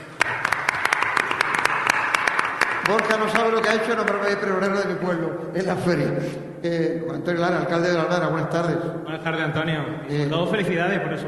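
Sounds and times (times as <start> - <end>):
audience applauding a guest at a Málaga fair event: 0.0 - 4.6
speech: 2.9 - 11.2.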